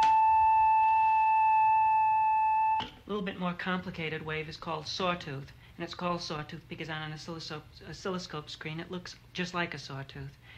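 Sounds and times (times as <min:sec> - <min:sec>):
smooth flute-like sine wave tone: 0:00.0 - 0:03.0
speech: 0:03.1 - 0:10.5.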